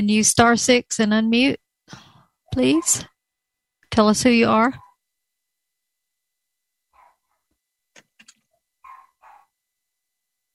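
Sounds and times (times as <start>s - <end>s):
speech: 0.0s - 2.0s, 2.6s - 3.1s, 3.9s - 4.8s
Shorkie dog barking: 6.9s - 7.4s, 8.8s - 9.6s.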